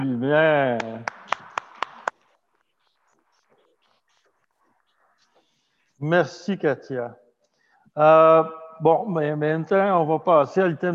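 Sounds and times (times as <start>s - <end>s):
speech: 0.2s - 1.2s, 6.0s - 7.2s, 8.0s - 10.9s
hand claps: 0.7s - 2.2s.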